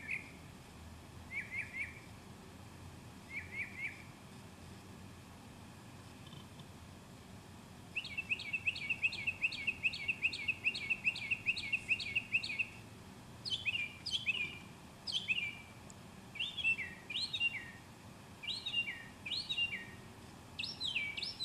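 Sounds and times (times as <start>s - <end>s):
birdsong: 0.0s - 0.4s, 1.2s - 2.2s, 3.2s - 4.9s, 7.9s - 21.4s.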